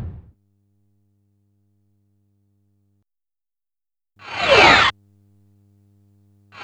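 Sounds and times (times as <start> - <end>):
hacking sound effects: 4.3 - 4.9.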